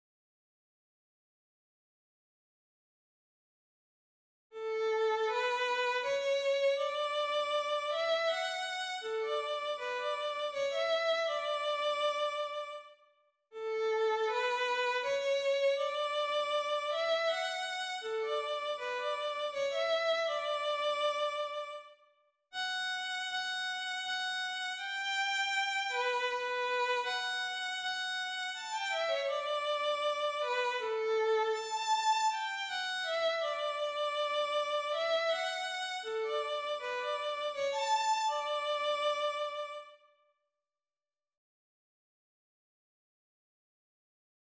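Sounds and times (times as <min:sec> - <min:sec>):
violin: 0:04.6 - 0:13.0, 0:13.6 - 0:22.0, 0:22.6 - 0:40.1.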